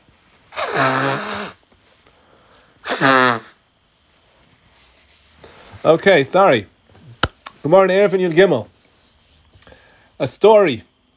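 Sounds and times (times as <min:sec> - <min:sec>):
nose blowing: 0:00.5 - 0:01.7, 0:02.8 - 0:03.6
speech: 0:00.8 - 0:01.3, 0:05.9 - 0:06.7, 0:07.6 - 0:08.7, 0:10.2 - 0:10.9.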